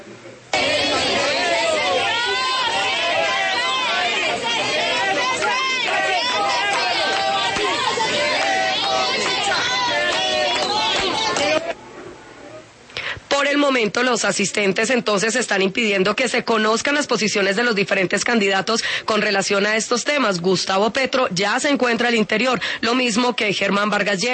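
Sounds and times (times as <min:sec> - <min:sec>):
protesters shouting outside a theater: 0:00.5 - 0:11.8
speech: 0:13.7 - 0:24.3.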